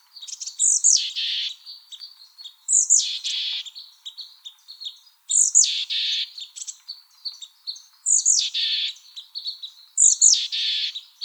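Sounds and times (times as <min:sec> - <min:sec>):
Mexican Chickadee calls with high thin and harsh buzzy notes: 0:00.2 - 0:01.6, 0:05.3 - 0:06.4, 0:08.1 - 0:09.0, 0:10.0 - 0:11.0.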